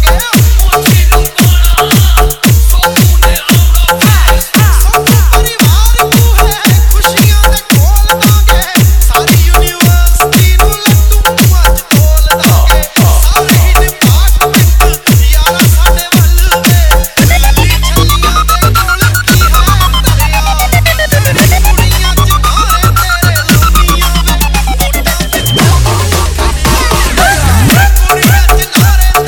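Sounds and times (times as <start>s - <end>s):
siren bass remix music: 0.0s - 29.2s.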